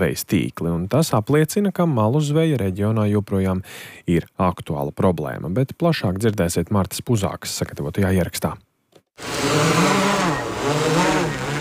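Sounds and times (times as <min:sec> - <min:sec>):
speech: 0:00.0 - 0:10.0
drone motors buzzing as it lifts off and flies: 0:09.2 - 0:11.6.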